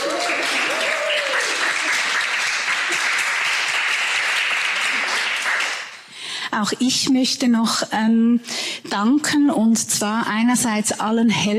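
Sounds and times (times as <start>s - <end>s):
audience applause: 0.0s - 6.1s
speech: 6.6s - 11.5s.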